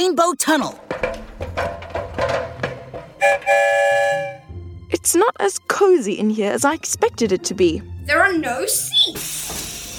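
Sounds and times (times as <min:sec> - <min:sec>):
speech: 0:00.0 - 0:01.8, 0:03.2 - 0:04.4, 0:05.0 - 0:09.8
clanking, shuffling train noises: 0:00.8 - 0:03.6
loud steady train whistle: 0:03.2 - 0:04.5.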